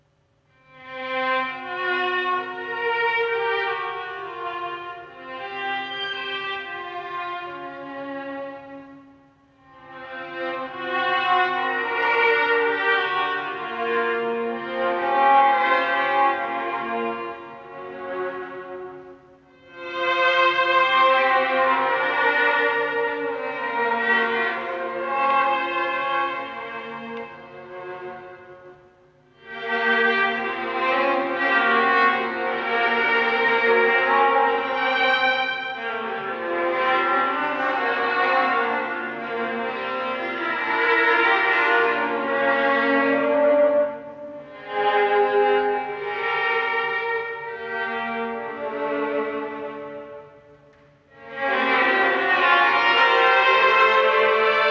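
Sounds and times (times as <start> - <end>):
violin and viola duo suite: 0.5 - 54.6.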